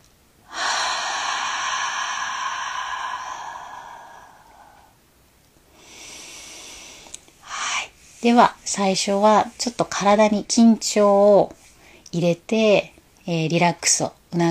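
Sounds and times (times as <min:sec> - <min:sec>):
long exhale through the mouth during yoga nidra breathing: 0:00.5 - 0:05.0, 0:05.7 - 0:08.0
speech: 0:08.2 - 0:14.4.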